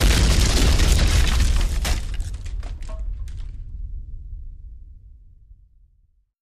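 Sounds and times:
wood debris falling: 0.0s - 3.5s
explosion: 0.0s - 5.7s.

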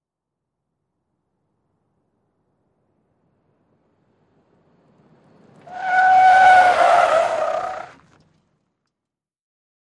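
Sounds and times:
SUV truck skidding in a 180 turn: 4.1s - 8.6s.

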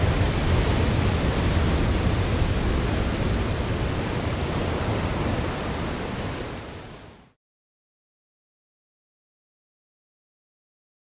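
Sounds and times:
large waves crashing: 0.0s - 7.4s.

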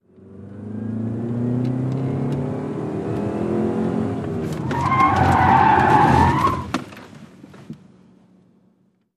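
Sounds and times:
sedan engine revving: 0.1s - 6.6s
sedan tyres skidding: 3.1s - 7.8s.

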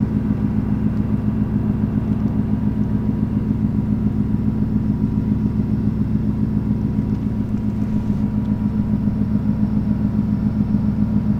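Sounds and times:
ship steady hum: 0.0s - 11.3s.

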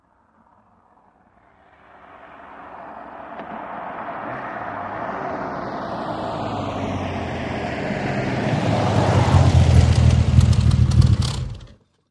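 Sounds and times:
Aston Martin car approaching briskly: 0.4s - 12.1s
Aston Martin car engine switching off: 9.4s - 12.0s.

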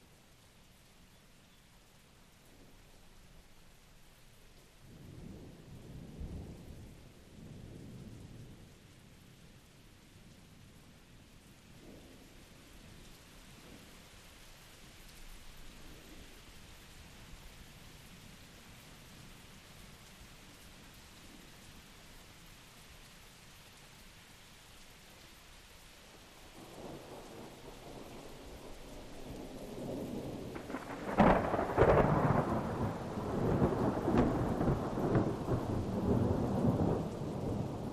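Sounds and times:
rain at Blue Mountain Lake Adirondacks New York: 0.0s - 37.9s
continuous thunder at Blue Mountain Lake Adirondacks New York: 4.8s - 13.9s, 26.4s - 37.9s.

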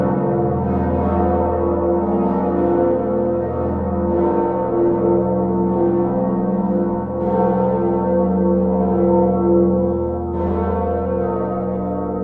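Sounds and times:
cathedral bell tower bells ringing: 0.0s - 12.2s.

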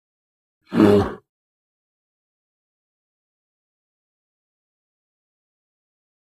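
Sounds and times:
grizzly bear roar: 0.7s - 1.3s.

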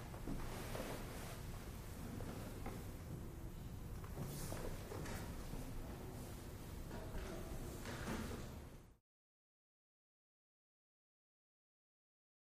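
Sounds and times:
busy school classroom: 0.1s - 8.8s.

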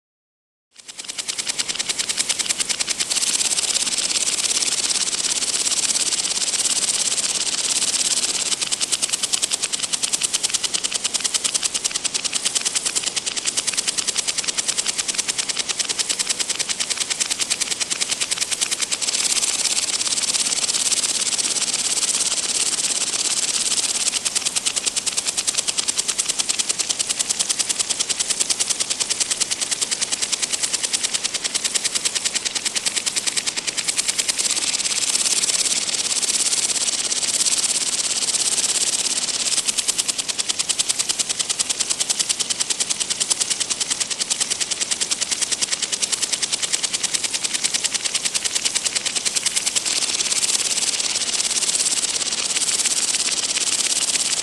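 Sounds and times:
two water sprinklers: 0.7s - 54.4s.

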